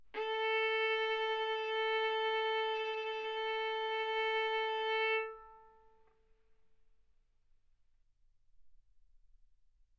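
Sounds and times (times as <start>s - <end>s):
violin bowed arco notes: 0.1s - 6.1s.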